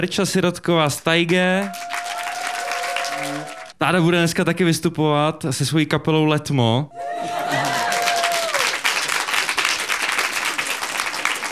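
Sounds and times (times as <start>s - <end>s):
speech: 0.0s - 2.1s, 3.2s - 7.1s
audience applause: 1.3s - 3.8s, 7.2s - 11.5s.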